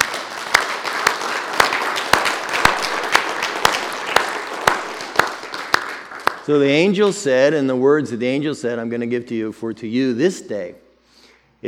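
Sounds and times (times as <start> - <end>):
scattered applause: 0.0 - 6.5
crowd clapping in rhythm: 0.0 - 7.1
speech: 6.5 - 10.8.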